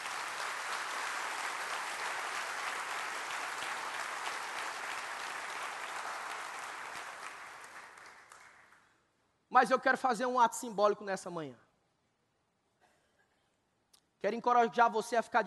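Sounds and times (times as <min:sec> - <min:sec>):
audience applause: 0:00.0 - 0:08.8
speech: 0:09.6 - 0:11.6, 0:14.2 - 0:15.4.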